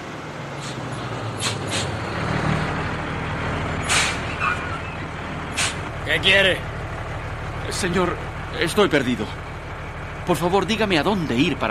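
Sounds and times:
truck engine rumbling: 0.0 - 11.6
truck air brake hissing: 1.4 - 2.0, 3.8 - 4.4, 5.5 - 5.8
speech: 6.1 - 6.7, 7.7 - 9.4, 10.3 - 11.6.

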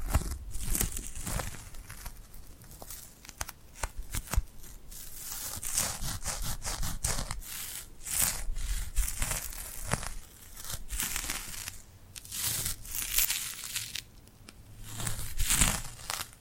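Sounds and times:
glued hands rubbing and pulling apart: 0.0 - 16.4.

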